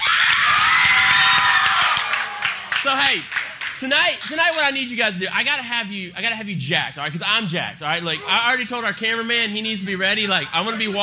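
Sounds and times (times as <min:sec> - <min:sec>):
audience yelling: 0:00.0 - 0:03.2
audience applauding: 0:00.0 - 0:04.6
speech: 0:02.8 - 0:11.0.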